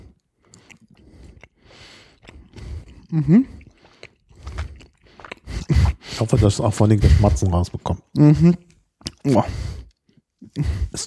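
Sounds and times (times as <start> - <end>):
someone chewing cheese at a tasting: 0.0 - 6.8, 9.0 - 10.8
speech: 3.1 - 3.6, 6.2 - 9.7, 10.6 - 11.0.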